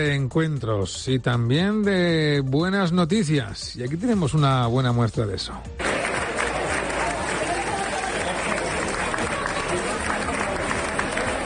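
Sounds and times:
speech: 0.0 - 6.1
crowd applauding: 5.8 - 11.4
indistinct murmur of voices: 5.8 - 11.4.

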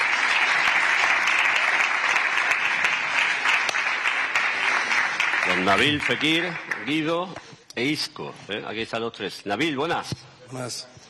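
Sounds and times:
crowd clapping: 0.0 - 7.4
speech: 5.5 - 11.0.

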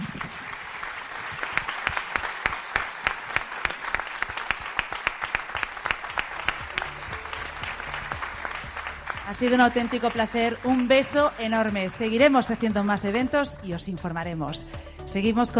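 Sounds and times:
audience applause: 0.0 - 11.8
speech: 9.3 - 15.5.

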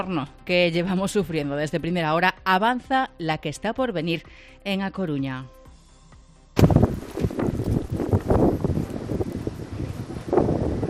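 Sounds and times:
speech: 0.0 - 5.6
strong gusty wind during the first autumn storm in A Coruña: 6.6 - 10.8.

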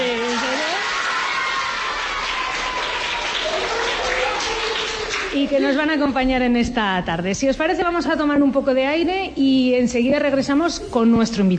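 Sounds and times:
schoolchildren applauding in studio audience: 0.0 - 5.6
speech: 5.4 - 11.5.

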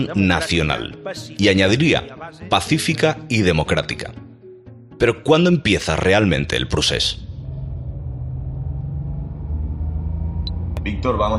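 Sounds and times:
speech: 0.0 - 4.2, 5.0 - 7.2, 10.8 - 11.3
car engine rumble heard from inside the car: 6.9 - 11.3.

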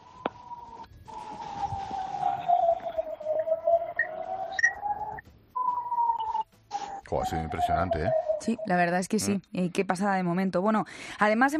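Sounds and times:
air raid sirens sounding: 0.0 - 8.7
speech: 7.1 - 11.5.

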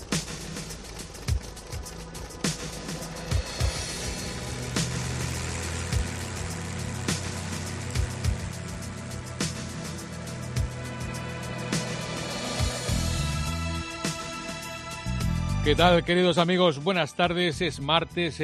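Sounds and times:
car engine running: 0.0 - 13.7
speech: 15.7 - 18.4.

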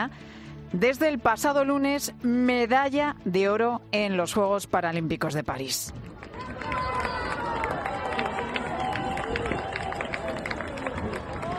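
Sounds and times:
speech: 0.0 - 6.8
crowd cheering and applauding at finish line: 6.0 - 11.5.

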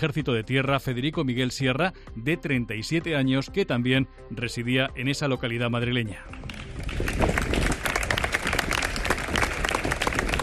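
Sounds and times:
speech: 0.0 - 7.4
applause ending a minute of silence: 6.3 - 10.4.

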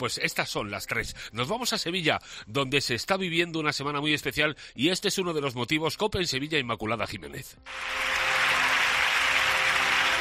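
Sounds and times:
speech: 0.0 - 8.6
crowd applauding the Virgin at midday Mass in the Basilica de la Macarena, Seville: 7.7 - 10.1.

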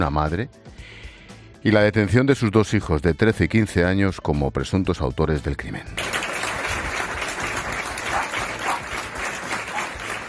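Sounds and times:
speech: 0.0 - 0.6, 1.6 - 6.2
applause from townspeople: 5.9 - 10.2.

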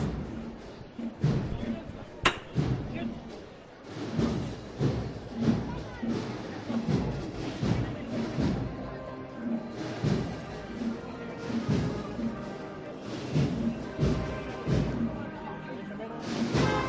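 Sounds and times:
crowd murmur: 0.0 - 16.8
hammer knock signaling lifting of procession float: 2.2 - 2.8.

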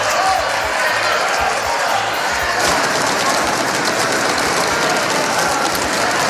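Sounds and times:
heavy rhythmic thumps: 0.0 - 6.2
parliament deputies shouting: 0.0 - 6.2
parliament deputies banging desks: 2.6 - 6.2.

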